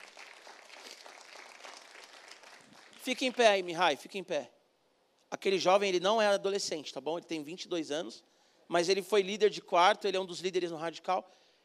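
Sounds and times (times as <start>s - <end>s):
audience applause: 0.0s - 3.4s
speech: 3.1s - 4.6s, 5.3s - 11.4s.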